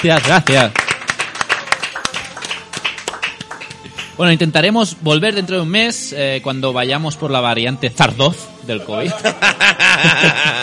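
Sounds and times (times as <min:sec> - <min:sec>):
speech: 0:00.0 - 0:00.8, 0:04.2 - 0:10.6
audience applause: 0:00.0 - 0:04.0
laughter: 0:09.0 - 0:10.6.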